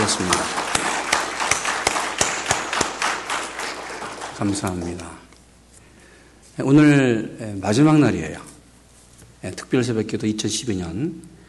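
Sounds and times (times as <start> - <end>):
audience clapping: 0.0 - 5.2
speech: 0.1 - 0.6, 4.4 - 5.2, 6.6 - 8.5, 9.4 - 11.3.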